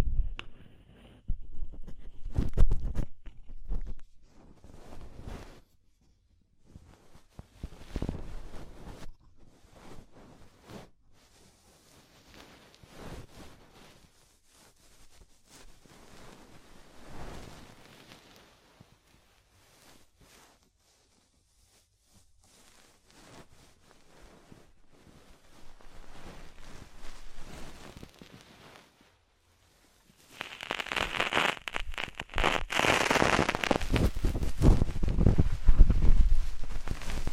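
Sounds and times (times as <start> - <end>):
deep ear cleaning scratchy rustling and scraping: 0.7 - 6.0, 6.6 - 37.3.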